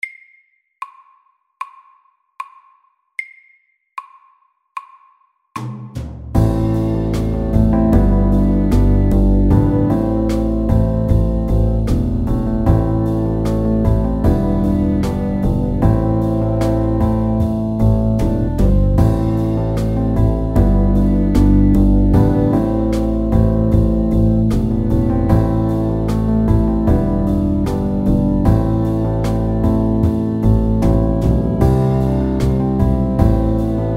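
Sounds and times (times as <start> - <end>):
pop ballad: 6.4 - 33.9.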